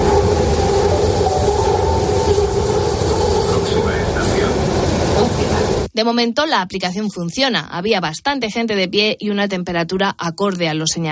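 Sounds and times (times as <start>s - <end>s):
train brief high squeals: 0.0s - 4.6s
Madrid metro train arriving and taking on passengers: 0.0s - 5.9s
speech: 6.0s - 11.1s.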